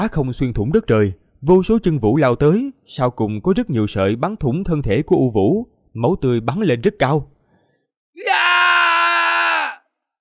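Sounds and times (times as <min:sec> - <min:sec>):
speech: 0:00.0 - 0:07.3
man yelling loudly: 0:08.2 - 0:09.9.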